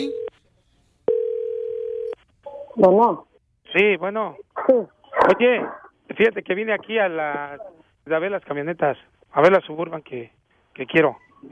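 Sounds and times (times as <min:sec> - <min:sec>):
telephone ringback tone: 0:00.0 - 0:00.3, 0:01.1 - 0:02.2
speech: 0:02.8 - 0:11.5.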